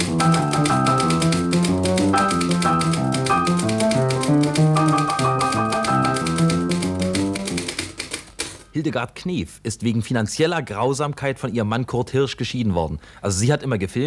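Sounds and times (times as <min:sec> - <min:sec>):
lively piano melody with a full rolling bass line: 0:00.0 - 0:08.4
typewriter typing in a 1952 cabaret radio broadcast: 0:00.0 - 0:08.8
speech: 0:08.8 - 0:14.0.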